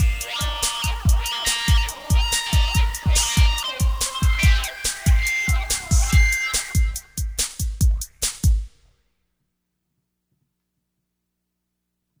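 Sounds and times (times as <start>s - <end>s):
soundcheck: 0.0s - 8.6s.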